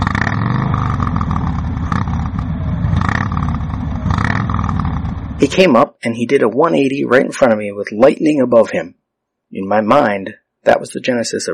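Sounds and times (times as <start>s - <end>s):
motorcycle engine revving: 0.0s - 5.6s
speech: 5.4s - 11.5s.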